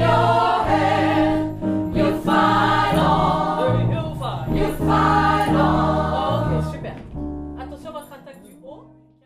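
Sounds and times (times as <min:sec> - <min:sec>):
soprano singing a gospel refrain: 0:00.0 - 0:06.8.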